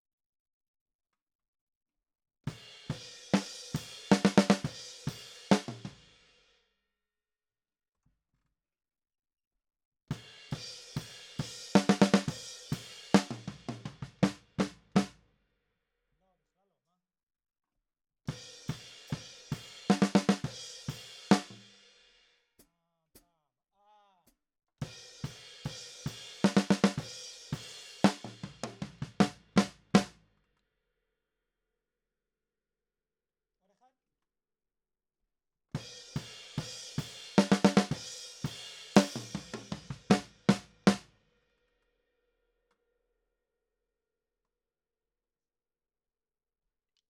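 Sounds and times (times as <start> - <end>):
snare drum: 3.3 - 6.0, 11.0 - 15.1, 19.1 - 21.7, 25.2 - 30.1, 36.1 - 41.0.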